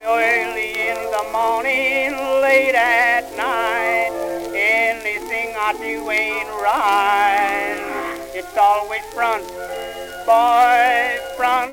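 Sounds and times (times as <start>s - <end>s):
blues music from a jukebox: 0.0s - 11.7s.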